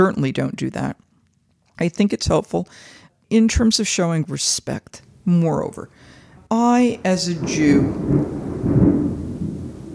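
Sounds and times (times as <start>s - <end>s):
speech: 0.0s - 1.0s, 1.8s - 9.2s
thunder rumbling during rain: 6.8s - 9.9s.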